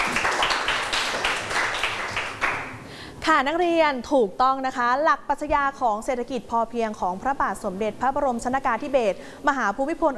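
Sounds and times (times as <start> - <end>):
students clapping: 0.0 - 2.8
speech: 3.3 - 10.1.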